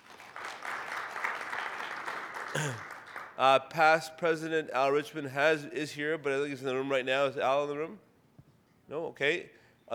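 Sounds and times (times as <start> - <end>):
audience applause: 0.0 - 3.3
speech: 2.6 - 8.1, 8.9 - 9.9.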